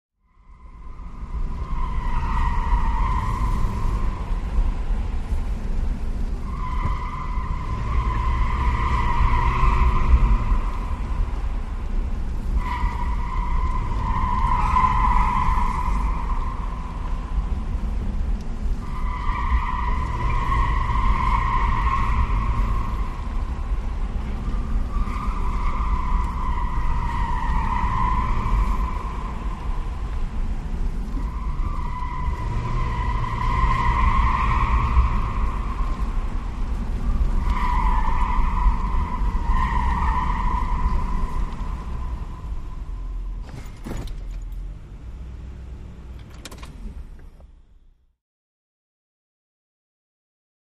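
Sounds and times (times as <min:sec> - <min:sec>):
Lincoln Town Car skidding: 0:00.3 - 0:44.6.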